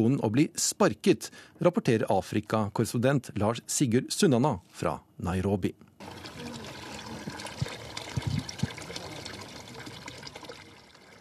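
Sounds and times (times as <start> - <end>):
speech: 0.0 - 6.6
water pouring into plastic cans at a water point in Kibera, Nairobi: 6.0 - 11.2.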